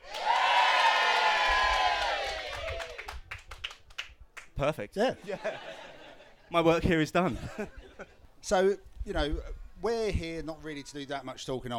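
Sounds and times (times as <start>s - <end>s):
live audience cheering: 0.0s - 3.3s
speech: 4.6s - 5.9s, 6.5s - 11.7s
laughter: 5.2s - 8.2s.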